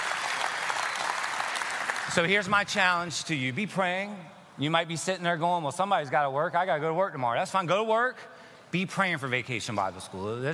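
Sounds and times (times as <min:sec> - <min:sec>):
audience applause: 0:00.0 - 0:02.3
speech: 0:02.1 - 0:10.5.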